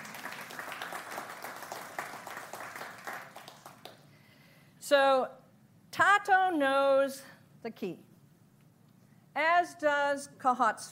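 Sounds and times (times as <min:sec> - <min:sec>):
audience applause: 0:00.0 - 0:04.0
speech: 0:04.9 - 0:05.4, 0:06.0 - 0:08.1, 0:09.4 - 0:10.8.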